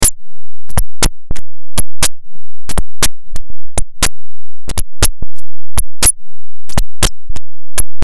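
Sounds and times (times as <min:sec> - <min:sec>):
FM7 synthesizer patches: 0:00.0 - 0:08.0.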